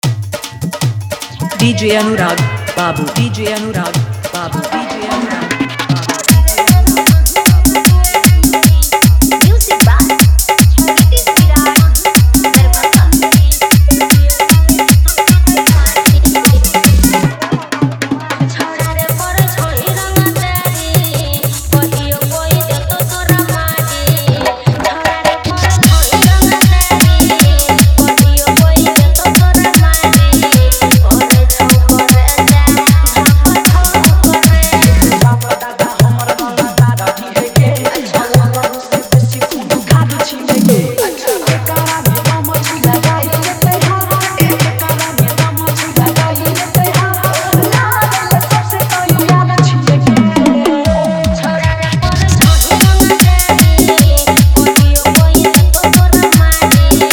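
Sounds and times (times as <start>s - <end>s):
full dholki drum with heavy bass: 0.0s - 57.1s.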